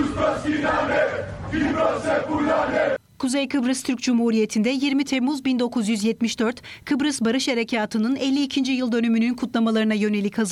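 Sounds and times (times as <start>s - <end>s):
crowd of Greek Cypriot protesters chanting slogans: 0.0s - 3.0s
speech: 1.8s - 10.5s.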